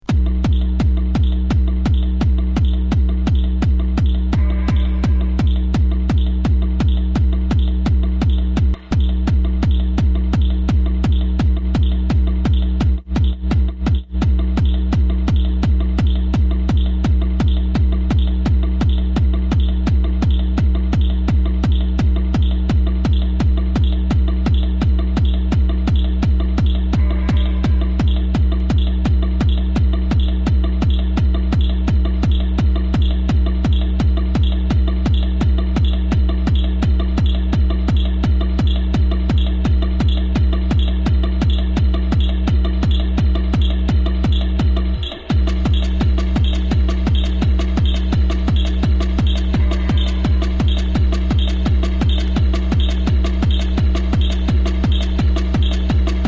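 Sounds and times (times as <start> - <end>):
hardcore and hardtek mix at 170 to 180 BPM: 0.0 - 56.2.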